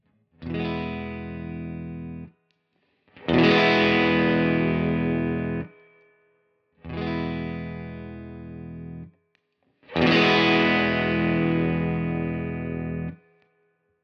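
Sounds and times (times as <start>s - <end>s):
guitar tone through Tone Tweaker boost at maximum: 0.4s - 2.3s, 3.2s - 5.7s, 6.9s - 9.1s, 9.9s - 13.2s.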